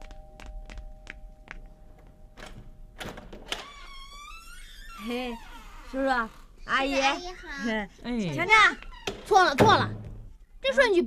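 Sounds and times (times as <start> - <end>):
door clunking and creaking open: 2.4 - 7.4, 8.5 - 10.3
speech: 5.0 - 10.0, 10.6 - 11.0.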